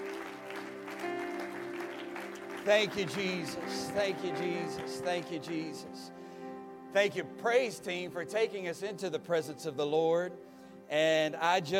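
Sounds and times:
audience clapping hands: 0.0s - 6.1s
speech: 2.6s - 6.2s, 6.9s - 11.7s.

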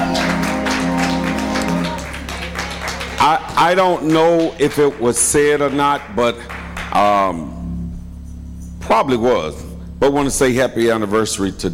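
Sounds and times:
audience clapping: 0.0s - 7.5s
low hum: 0.0s - 11.7s
speech: 3.2s - 7.6s, 8.9s - 11.7s.

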